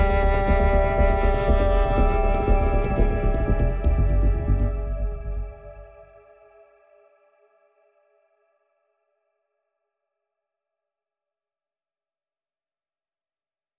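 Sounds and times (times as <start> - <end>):
aggressive strings: 0.0 - 6.1.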